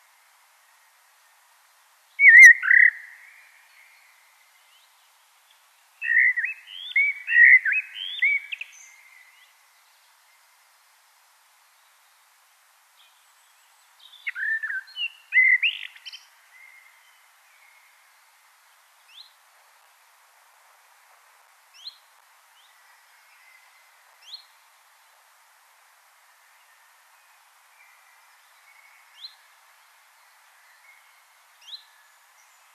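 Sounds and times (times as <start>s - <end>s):
common blackbird singing: 2.2s - 4.0s, 6.0s - 9.4s, 14.0s - 17.8s.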